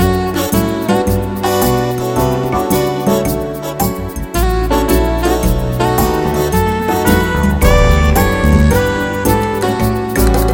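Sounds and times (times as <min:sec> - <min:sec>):
happy swing music: 0:00.0 - 0:10.5.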